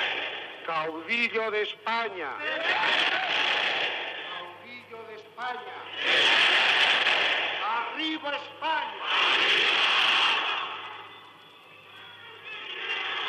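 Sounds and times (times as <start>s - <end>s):
speech: 0.7s - 3.6s, 5.4s - 6.6s, 7.9s - 10.1s
crowd shouting chants: 2.4s - 4.6s, 5.6s - 11.2s, 12.3s - 13.2s.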